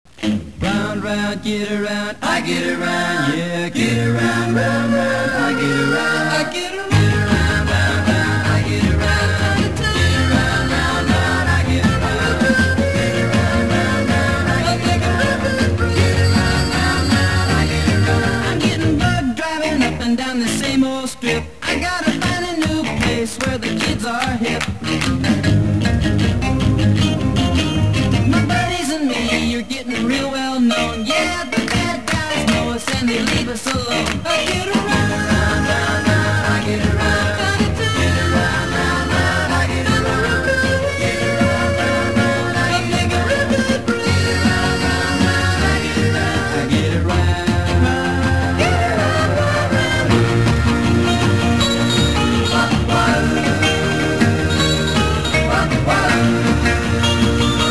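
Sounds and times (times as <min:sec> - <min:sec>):
music: 0:00.1 - 0:57.6.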